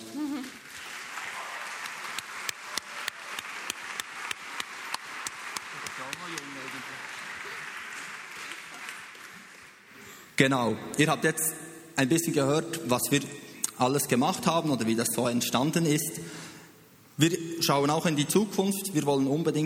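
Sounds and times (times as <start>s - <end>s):
applause: 0.0s - 10.3s
speech: 10.4s - 16.4s, 17.2s - 19.6s.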